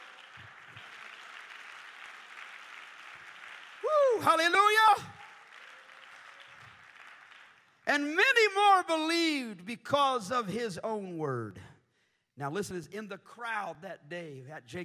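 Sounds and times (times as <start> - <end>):
audience clapping hands: 0.0 - 8.4
speech: 4.2 - 5.2, 7.9 - 11.7, 12.4 - 14.8.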